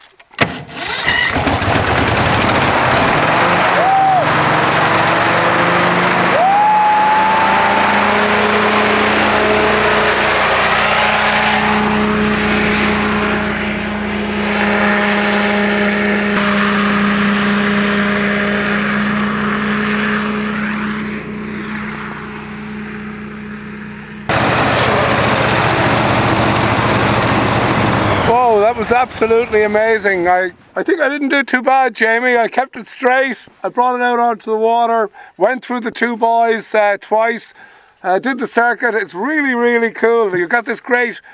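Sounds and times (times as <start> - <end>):
watercraft engine starting and running: 1.3 - 30.4
speech: 29.2 - 41.3.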